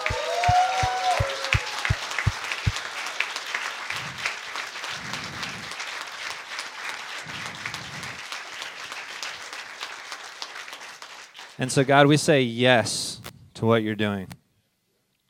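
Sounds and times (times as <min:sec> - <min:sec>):
audience cheering and applauding: 0:00.0 - 0:12.2
speech: 0:11.6 - 0:14.4.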